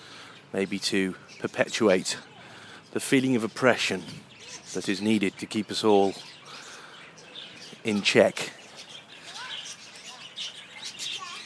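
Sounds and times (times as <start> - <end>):
zebra finches and budgerigars chirping in an aviary: 0.0 - 11.4
speech: 0.5 - 2.3, 2.9 - 6.4, 7.8 - 8.6.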